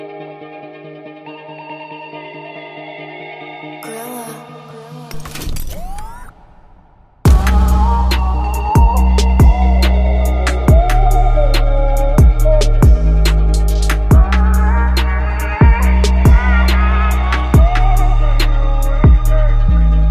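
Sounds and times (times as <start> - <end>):
music beat: 5.8 - 20.0.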